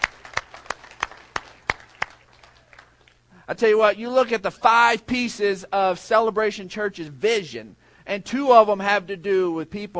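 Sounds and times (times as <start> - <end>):
audience clapping for the teachers: 0.0 - 3.2
speech: 3.5 - 9.9.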